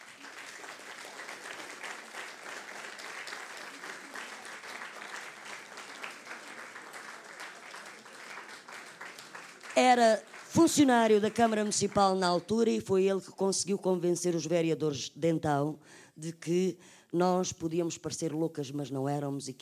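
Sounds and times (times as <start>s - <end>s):
audience applause: 0.0s - 12.1s
speech: 9.8s - 19.6s.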